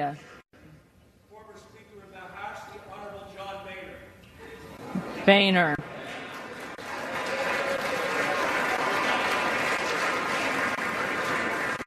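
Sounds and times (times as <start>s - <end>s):
speech: 0.0s - 0.3s, 5.3s - 5.8s
crowd applauding: 5.8s - 11.8s.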